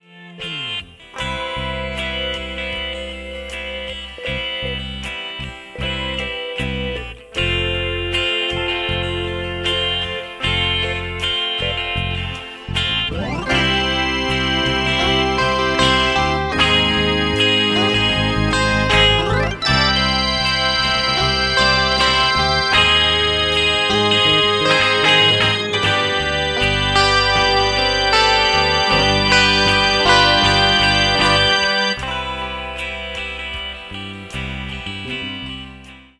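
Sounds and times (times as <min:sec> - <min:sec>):
ringtone: 0:00.4 - 0:35.9.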